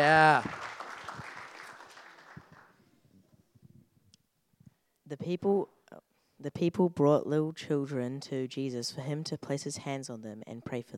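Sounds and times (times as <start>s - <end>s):
audience clapping: 0.0s - 2.8s
speech: 5.1s - 10.9s.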